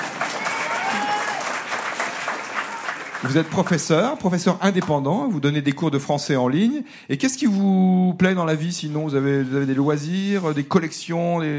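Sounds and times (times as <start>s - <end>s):
audience applause: 0.0s - 4.3s
speech: 3.2s - 11.5s.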